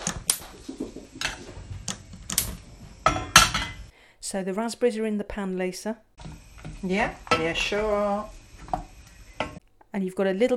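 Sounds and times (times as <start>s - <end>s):
gas hob igniter clicking: 1.2s - 3.9s, 6.2s - 9.6s
speech: 4.3s - 6.1s, 6.8s - 8.4s, 10.0s - 10.5s.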